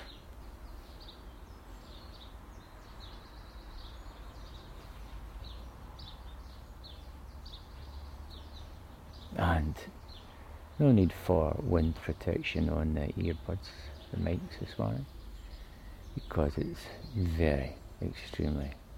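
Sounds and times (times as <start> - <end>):
birdsong on a summer morning: 0.0 - 18.9
speech: 9.5 - 10.2, 10.8 - 15.2, 16.2 - 18.8.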